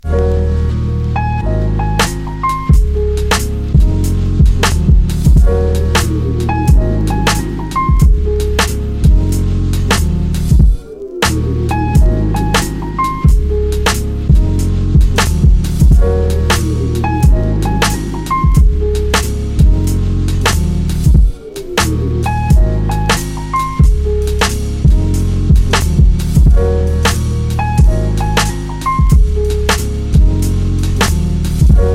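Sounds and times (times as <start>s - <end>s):
jazz music: 0.0s - 31.9s.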